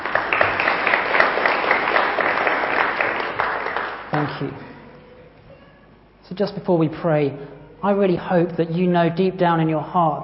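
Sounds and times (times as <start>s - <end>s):
audience applause: 0.0s - 4.4s
speech: 4.2s - 4.7s, 6.3s - 10.2s.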